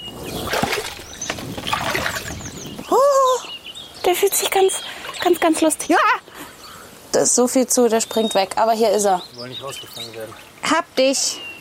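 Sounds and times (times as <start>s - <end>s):
water sloshing and trickling in a mini bog basin: 0.0s - 2.9s, 4.3s - 6.0s, 9.4s - 10.8s
person wading in rubber boots into a mini bog basin with water: 0.4s - 2.6s
speech: 4.1s - 6.3s, 7.2s - 11.5s.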